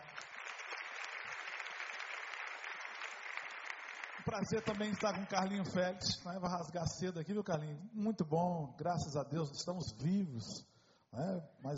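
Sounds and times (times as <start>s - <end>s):
audience applause: 0.0s - 6.0s
speech: 4.2s - 11.7s.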